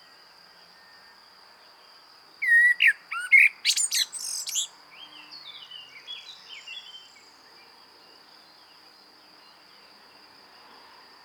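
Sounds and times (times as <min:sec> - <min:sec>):
common blackbird singing: 0:02.4 - 0:04.7.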